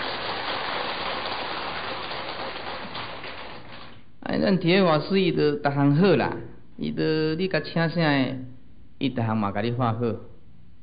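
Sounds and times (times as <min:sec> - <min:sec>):
audience applause: 0:00.0 - 0:04.0
speech: 0:04.3 - 0:10.3.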